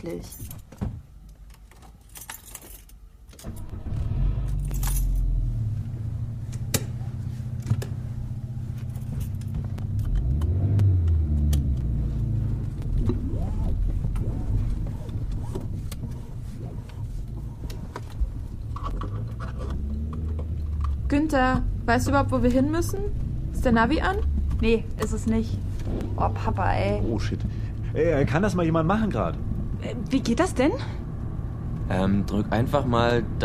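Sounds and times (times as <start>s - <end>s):
speech: 0.0s - 0.7s, 21.3s - 31.0s, 31.9s - 33.4s
keys jangling: 1.5s - 3.4s, 4.5s - 5.4s, 8.8s - 10.1s
car engine starting and rumbling while driving: 3.4s - 33.4s.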